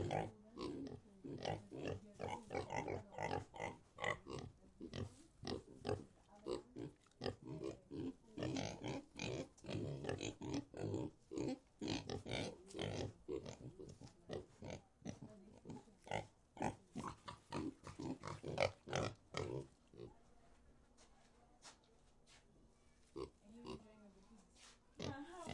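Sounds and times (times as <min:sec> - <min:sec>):
pigs grunting: 0:00.0 - 0:20.1.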